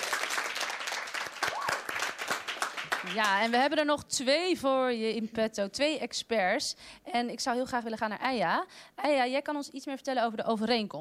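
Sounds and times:
crowd applauding: 0.0s - 3.6s
speech: 3.0s - 10.9s.

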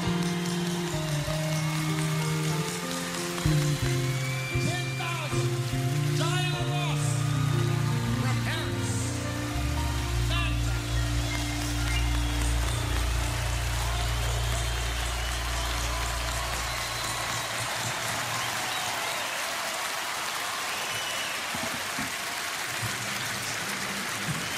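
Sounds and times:
water falling like rain: 0.2s - 24.5s.

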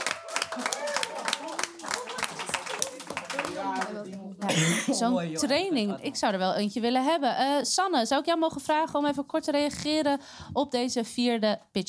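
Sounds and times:
audience applause: 0.0s - 4.2s
speech: 0.6s - 0.8s, 3.6s - 11.8s.

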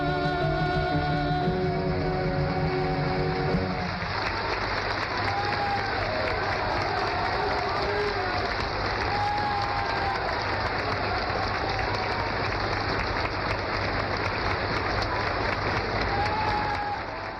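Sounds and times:
audience applause: 0.2s - 17.3s.

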